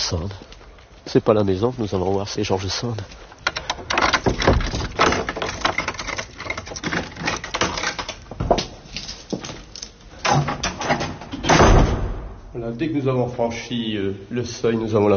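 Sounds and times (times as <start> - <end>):
speech: 0.1 - 3.9, 12.8 - 15.1
house door opening: 3.4 - 12.4.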